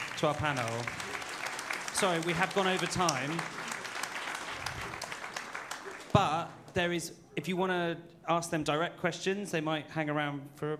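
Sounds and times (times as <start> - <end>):
applause: 0.0 - 6.8
speech: 0.2 - 1.0, 2.0 - 3.6, 6.2 - 10.7.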